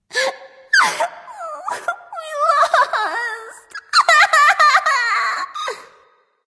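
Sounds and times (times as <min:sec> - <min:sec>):
person crying boo hoo: 0:00.8 - 0:06.0.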